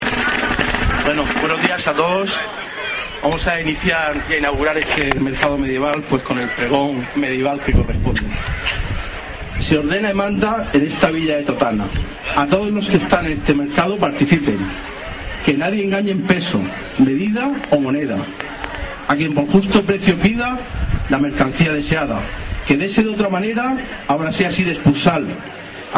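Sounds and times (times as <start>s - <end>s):
medieval market ambience: 0.0s - 25.9s.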